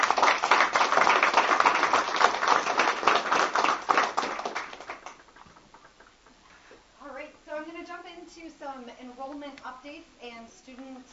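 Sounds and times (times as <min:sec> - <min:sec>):
round of applause: 0:00.0 - 0:06.1.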